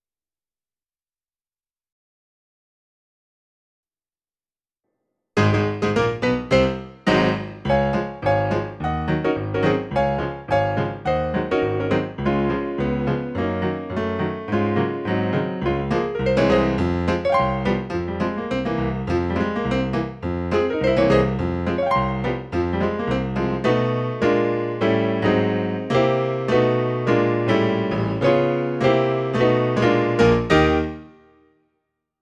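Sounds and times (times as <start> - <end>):
musical accompaniment: 5.4 - 31.4.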